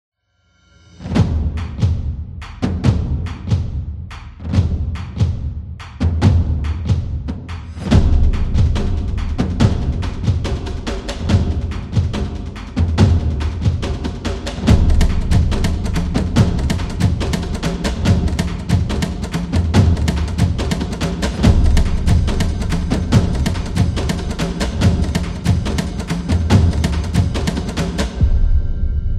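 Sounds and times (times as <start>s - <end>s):
cinematic war drums: 1.0s - 29.1s.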